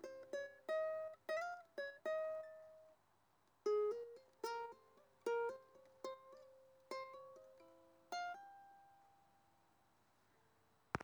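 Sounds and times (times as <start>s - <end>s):
ukulele solo: 0.0s - 3.0s, 3.6s - 9.2s.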